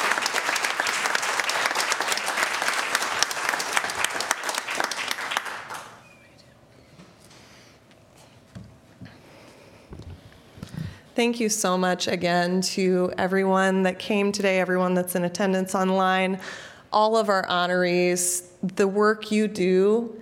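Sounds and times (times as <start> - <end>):
audience applause for honorees: 0.0 - 6.0
speech: 11.2 - 20.1.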